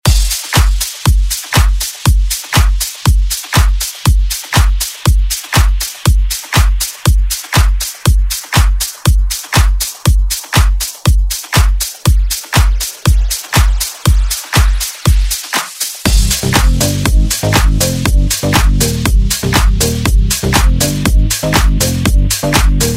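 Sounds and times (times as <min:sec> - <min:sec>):
house music: 0:00.0 - 0:22.9.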